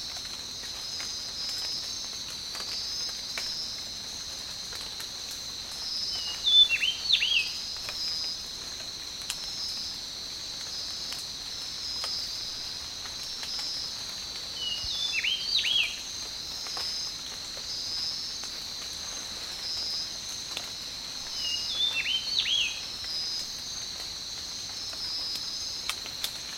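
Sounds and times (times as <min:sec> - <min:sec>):
tropical rain: 0:00.0 - 0:26.5.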